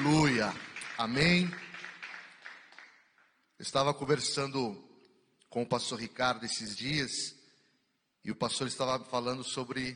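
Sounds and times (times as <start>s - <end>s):
speech: 0.0s - 1.7s, 3.6s - 4.9s, 5.5s - 7.4s, 8.2s - 9.9s
audience applauding: 0.0s - 3.4s.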